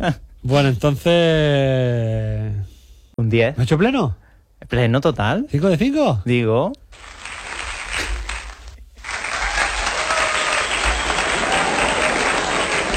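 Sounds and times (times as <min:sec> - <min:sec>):
speech: 0:00.0 - 0:07.2
applause: 0:07.0 - 0:12.9.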